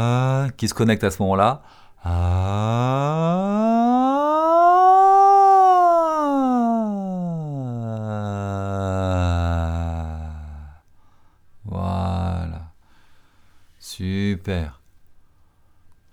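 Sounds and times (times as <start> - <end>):
speech: 0.0 - 3.8, 14.4 - 14.8
vocal siren glide across vocal range: 2.1 - 10.7.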